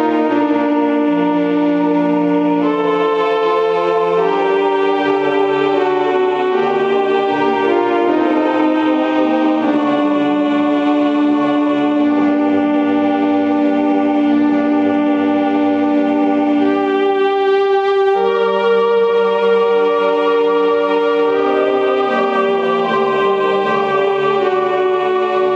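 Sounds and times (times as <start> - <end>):
alto voice singing, digital recording: 0.0 - 25.5.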